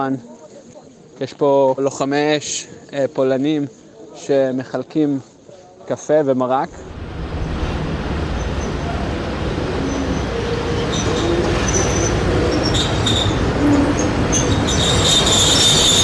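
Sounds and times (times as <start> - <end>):
speech: 0.0 - 0.4, 1.2 - 5.3, 5.9 - 6.9
train pulling into a station: 6.8 - 16.0
metallic wheel squeals: 8.3 - 9.0, 9.8 - 16.0.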